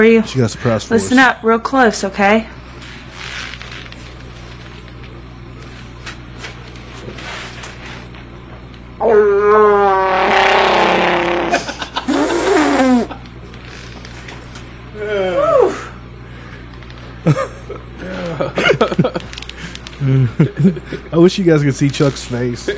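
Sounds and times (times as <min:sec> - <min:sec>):
speech: 0:00.0 - 0:02.6, 0:09.0 - 0:10.0, 0:20.4 - 0:22.7
voice imitating a growling warbling creature roar: 0:09.0 - 0:13.1
laughter: 0:11.5 - 0:13.2, 0:17.3 - 0:19.3, 0:20.0 - 0:21.1.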